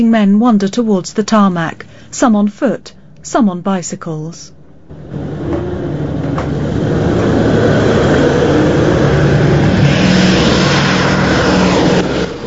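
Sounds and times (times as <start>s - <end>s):
speech: 0.0s - 5.6s
B-17 four-engine propeller bombers coming in to land: 4.6s - 12.4s.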